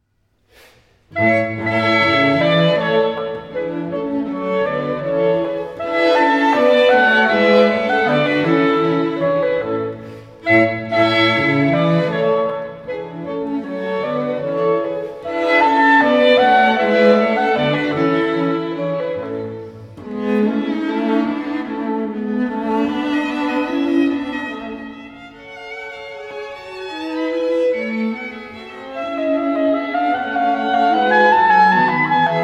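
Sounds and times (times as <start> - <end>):
clarinet: 1.1 - 32.4.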